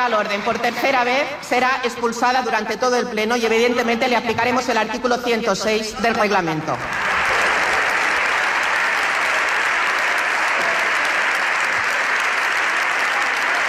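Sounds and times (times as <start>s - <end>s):
speech: 0.0s - 7.1s
deputies applauding in a parliamentary chamber: 6.9s - 13.6s.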